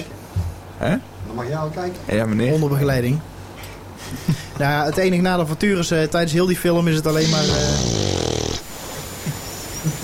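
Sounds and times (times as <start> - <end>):
speech: 0.8 - 3.3, 4.1 - 8.2
dog growling and wheezing: 7.2 - 8.7.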